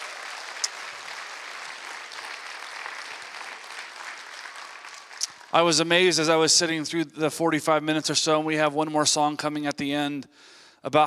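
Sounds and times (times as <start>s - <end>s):
audience applause: 0.0s - 6.3s
speech: 5.5s - 11.0s.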